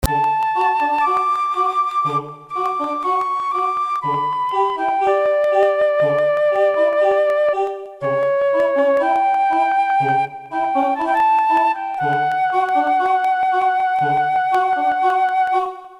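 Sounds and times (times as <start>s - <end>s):
music loop: 0.0s - 15.9s.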